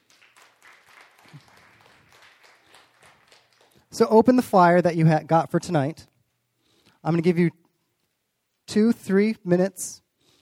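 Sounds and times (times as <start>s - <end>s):
audience clapping: 0.0s - 4.4s
speech: 4.0s - 6.1s, 7.0s - 7.6s, 8.7s - 10.0s.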